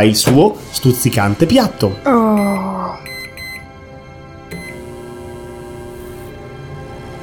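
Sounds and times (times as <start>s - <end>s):
speech: 0.0s - 2.7s
microwave oven humming: 2.3s - 7.2s
short high electronic beeps: 2.4s - 3.6s, 4.5s - 4.8s.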